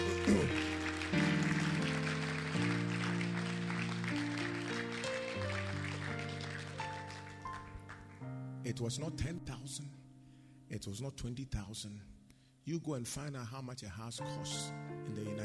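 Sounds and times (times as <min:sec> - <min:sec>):
audience clapping: 0:00.0 - 0:08.4
speech: 0:08.7 - 0:10.1, 0:10.7 - 0:15.4.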